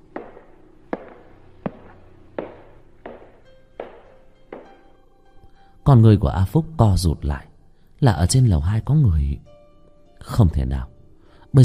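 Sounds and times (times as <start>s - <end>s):
footsteps on a second-floor staircase: 0.0s - 5.0s
speech: 5.8s - 9.5s, 10.2s - 10.9s.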